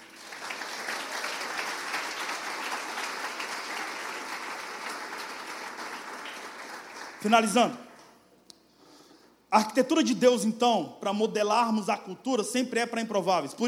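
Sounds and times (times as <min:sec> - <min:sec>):
crowd applause: 0:00.0 - 0:07.6
speech: 0:07.2 - 0:07.8, 0:09.5 - 0:13.6.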